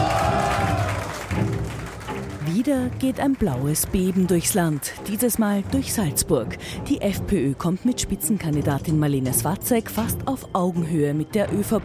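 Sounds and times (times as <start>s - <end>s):
crowd cheering at election results: 0.0s - 2.6s
crowd applauding at election results: 0.0s - 5.8s
speech: 2.6s - 11.8s.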